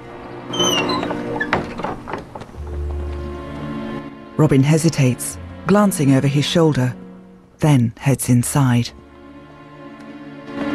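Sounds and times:
wooden barn door creaking open: 0.4s - 3.3s
speech: 4.4s - 7.0s, 7.6s - 9.0s.

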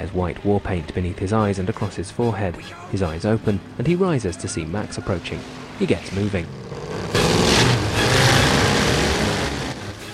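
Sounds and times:
speech: 0.0s - 7.4s
vehicle engine roaring past on barren plains: 4.8s - 10.1s.

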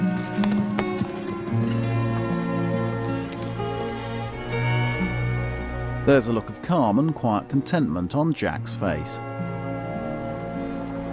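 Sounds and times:
chestnut horse galloping off up a track: 0.0s - 5.3s
sustained musical tones: 0.0s - 11.1s
speech: 6.1s - 9.3s.

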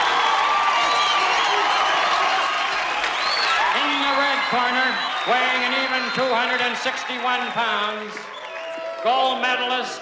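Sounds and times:
boxing arena crowd cheering: 0.0s - 10.0s
scattered applause: 0.0s - 10.0s
thin whistles: 0.8s - 2.2s, 2.9s - 6.6s, 8.2s - 8.8s
speech: 4.5s - 8.3s, 9.0s - 10.0s.

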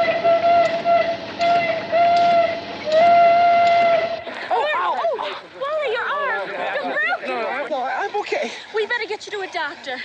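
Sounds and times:
steam engine whistle blasts: 0.0s - 4.3s
excited voices: 4.4s - 10.0s
speech: 9.7s - 10.0s.

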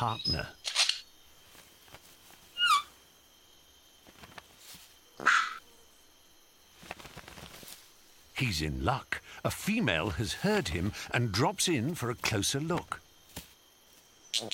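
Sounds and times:
speech: 0.0s - 0.8s, 8.4s - 13.0s, 14.4s - 14.5s
insects buzzing: 0.0s - 14.5s
bird mimicking a dog's bark: 5.2s - 5.6s.

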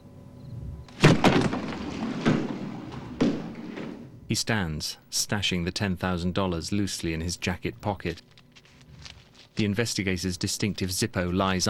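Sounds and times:
pearl-handled gun dropped onto the floor and kicked across it: 0.9s - 4.2s
speech: 4.3s - 8.3s, 9.6s - 11.6s.

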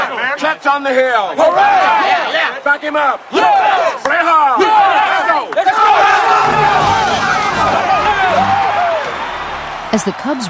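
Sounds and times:
speech: 0.4s - 4.8s, 10.0s - 10.4s
fans clapping and cheering: 1.4s - 10.4s.

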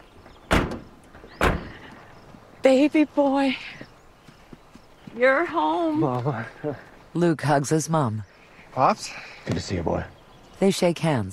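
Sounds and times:
truck doors shutting as passengers step out: 0.4s - 1.9s
speech: 2.6s - 3.8s, 5.2s - 11.3s.

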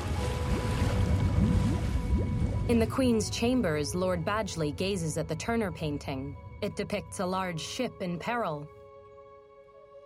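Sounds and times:
rushing water and waves around the sinking ship Water Lily: 0.0s - 3.2s
speech: 2.7s - 8.8s.

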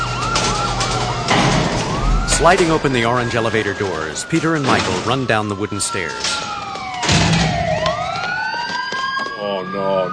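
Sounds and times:
police car sirens wailing: 0.0s - 10.1s
rumbling noise: 0.1s - 5.6s
speech: 2.4s - 6.6s, 9.6s - 10.1s.

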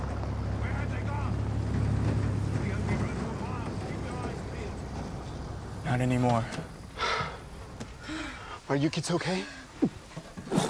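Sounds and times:
truck driving past on the main road: 0.0s - 7.8s
speech: 6.0s - 6.8s, 8.7s - 10.0s.

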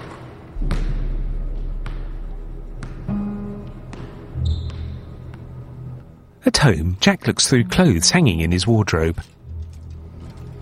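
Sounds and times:
basketball bouncing on a hard court: 0.0s - 5.2s
sneakers squeaking: 2.8s - 5.8s
speech: 6.5s - 9.4s.

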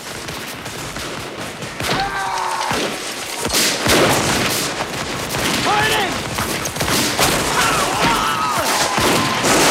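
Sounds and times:
Confederate soldiers firing guns while advancing in a Civil War battle: 0.0s - 9.6s.

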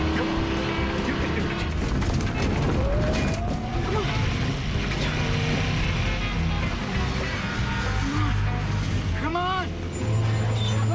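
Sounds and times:
RV engine revving on rocky ground: 0.0s - 10.9s
gritty noise: 1.6s - 9.3s.

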